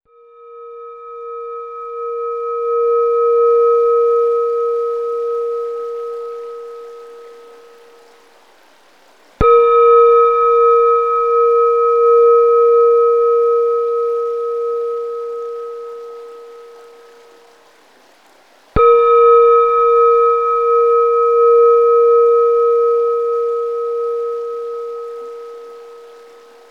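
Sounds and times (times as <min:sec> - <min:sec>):
Tibetan singing bowls: 0:00.1 - 0:08.2, 0:09.4 - 0:17.6, 0:18.8 - 0:26.7.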